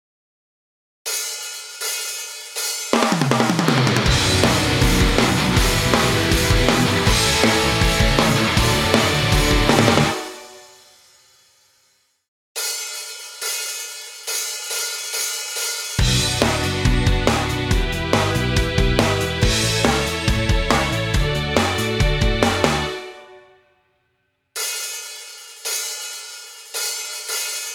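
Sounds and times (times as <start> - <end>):
karaoke singing: 3.6 - 10.3, 16.1 - 22.9.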